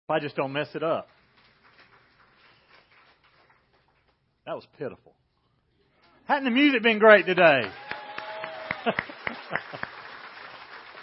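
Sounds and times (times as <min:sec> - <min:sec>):
speech: 0:00.1 - 0:01.2, 0:04.5 - 0:05.2, 0:06.3 - 0:07.9, 0:08.8 - 0:09.9
smattering of applause: 0:00.9 - 0:04.2, 0:06.4 - 0:11.0.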